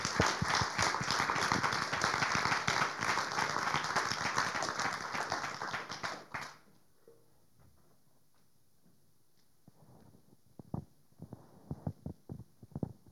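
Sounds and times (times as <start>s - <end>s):
audience applause: 0.0s - 6.6s.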